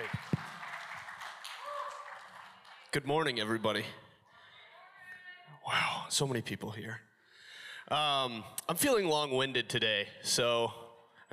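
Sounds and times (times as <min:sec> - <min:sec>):
crowd clapping: 0:00.0 - 0:03.6
speech: 0:02.9 - 0:04.0, 0:05.7 - 0:07.1, 0:07.9 - 0:11.3.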